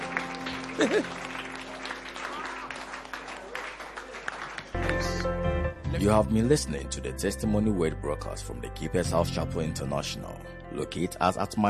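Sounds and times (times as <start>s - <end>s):
audience clapping: 0.0s - 5.4s
speech: 0.8s - 1.3s, 6.0s - 11.6s.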